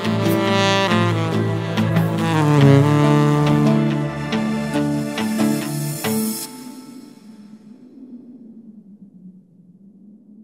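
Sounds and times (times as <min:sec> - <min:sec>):
saxophone cover: 0:00.0 - 0:07.2.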